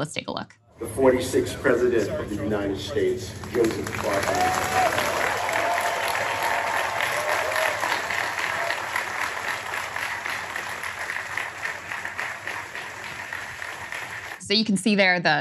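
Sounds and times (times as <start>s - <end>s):
speech: 0.0s - 5.2s, 14.5s - 15.4s
standing ovation applause for the president: 3.0s - 14.4s.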